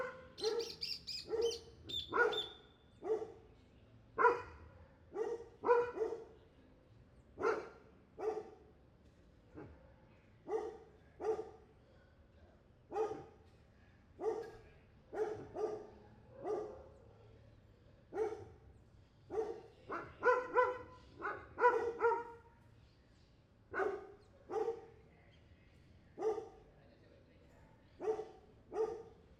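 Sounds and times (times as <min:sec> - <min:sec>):
street dog barking: 0:00.0 - 0:03.5, 0:04.2 - 0:06.4, 0:07.4 - 0:08.6, 0:10.4 - 0:11.6, 0:12.9 - 0:13.4, 0:14.2 - 0:17.0, 0:18.1 - 0:18.6, 0:19.3 - 0:22.4, 0:23.7 - 0:25.0, 0:26.2 - 0:26.6, 0:28.0 - 0:29.2.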